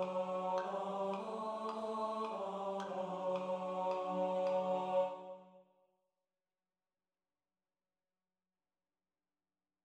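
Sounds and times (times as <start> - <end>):
tenor study: 0.0 - 5.5.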